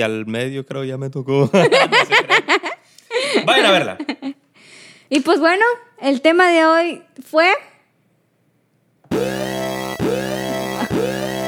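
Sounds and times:
speech: 0.0s - 2.7s, 3.4s - 4.4s, 5.1s - 7.7s
laughter: 1.5s - 4.4s
electronic whooping alarm: 9.1s - 11.4s.

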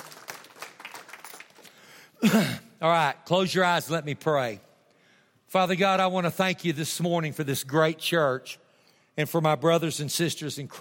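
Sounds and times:
audience clapping: 0.0s - 2.0s
speech: 2.2s - 4.7s, 5.5s - 8.6s, 9.2s - 10.7s.

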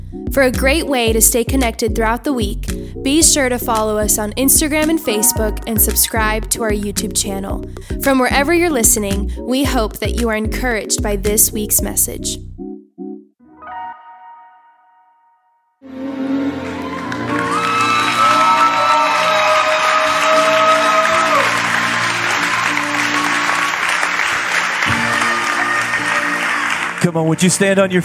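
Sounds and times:
speech: 0.1s - 12.6s, 27.0s - 28.0s
audience applause: 16.4s - 28.0s.

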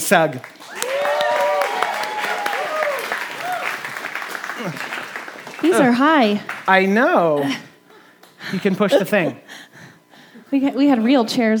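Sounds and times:
speech: 0.1s - 0.6s, 4.6s - 4.9s, 5.6s - 7.7s, 8.4s - 9.4s, 10.5s - 11.5s
church audience applause: 0.2s - 7.2s
church audience cheering and whooping: 0.7s - 5.2s
laughter: 4.4s - 5.7s.

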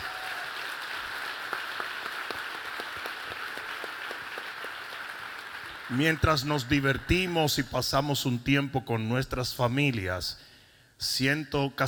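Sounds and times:
audience applause: 0.0s - 7.5s
speech: 5.9s - 11.8s.

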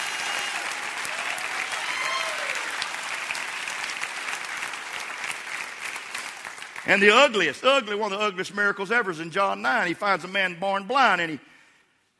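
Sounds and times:
crowd cheering: 0.0s - 6.7s
crowd clapping: 0.0s - 7.6s
speech: 6.9s - 11.5s.

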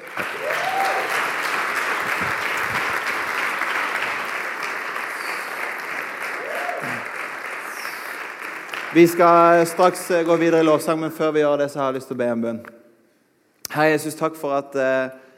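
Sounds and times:
large crowd applause: 0.0s - 10.7s
faint cheers and whoops: 0.2s - 1.2s, 6.3s - 7.1s
speech: 8.9s - 12.8s, 13.8s - 15.2s.

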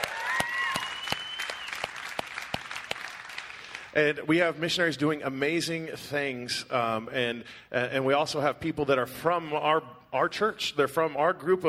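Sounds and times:
thin scattered audience hand claps: 0.0s - 3.9s
speech: 4.0s - 11.6s.

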